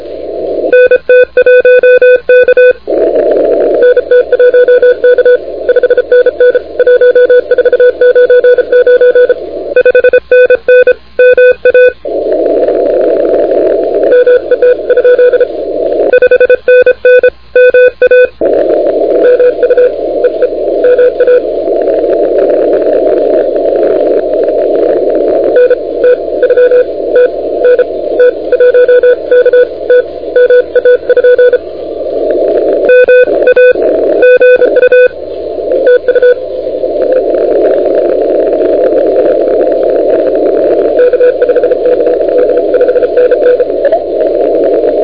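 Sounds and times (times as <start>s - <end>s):
continuous wave radio signal on 28MHz: 0.0s - 45.0s.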